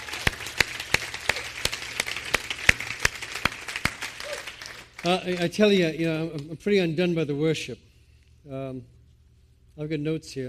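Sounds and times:
audience hand clapping: 0:00.0 - 0:06.5
speech: 0:05.0 - 0:07.8, 0:08.4 - 0:09.0, 0:09.8 - 0:10.4.

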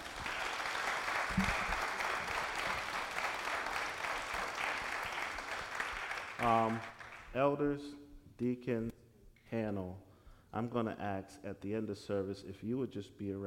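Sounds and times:
audience applauding panel: 0:00.0 - 0:07.3
speech: 0:01.4 - 0:01.7, 0:06.4 - 0:08.9, 0:09.6 - 0:13.4.

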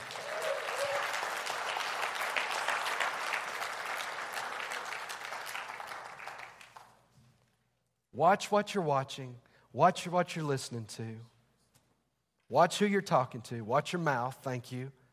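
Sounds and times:
crowd applauding: 0:00.0 - 0:07.0
speech: 0:08.2 - 0:11.3, 0:12.5 - 0:15.0.

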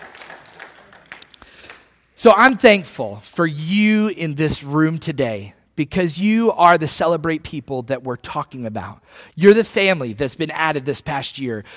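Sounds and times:
audience clapping: 0:00.0 - 0:02.0
speech: 0:02.2 - 0:11.7.

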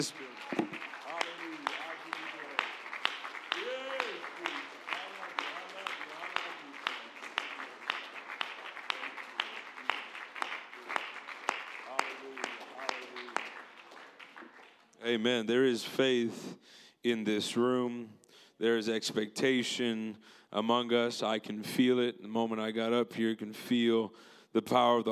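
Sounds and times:
speech: 0:00.0 - 0:00.3, 0:15.1 - 0:25.1
audience applause: 0:00.0 - 0:14.9.

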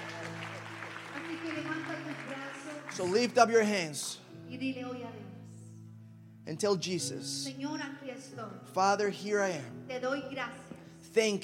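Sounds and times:
audience clapping: 0:00.0 - 0:04.2
speech: 0:03.0 - 0:05.2, 0:06.5 - 0:11.4.

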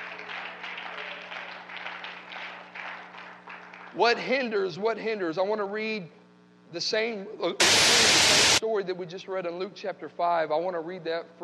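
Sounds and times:
audience applause in praise: 0:00.0 - 0:04.0
speech: 0:03.9 - 0:11.4.

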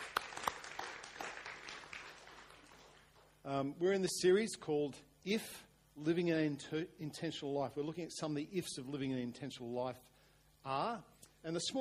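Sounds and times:
audience clapping: 0:00.0 - 0:03.4
speech: 0:03.4 - 0:11.7.

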